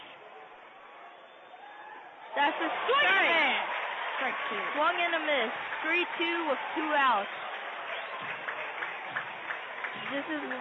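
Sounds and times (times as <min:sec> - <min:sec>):
baseball stadium crowd cheering: 0:00.0 - 0:10.5
speech: 0:02.4 - 0:07.4, 0:10.1 - 0:10.5
faint rhythmic crowd clapping: 0:02.4 - 0:10.5.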